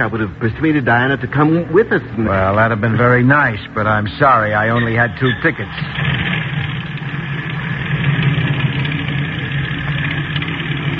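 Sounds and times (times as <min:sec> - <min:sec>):
speech: 0:00.0 - 0:06.4
airplane engine droning: 0:00.0 - 0:10.9.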